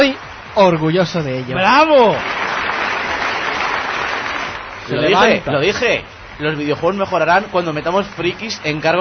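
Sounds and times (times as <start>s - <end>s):
speech: 0.1s - 2.4s, 4.9s - 8.9s
auditorium audience applause: 1.8s - 4.9s.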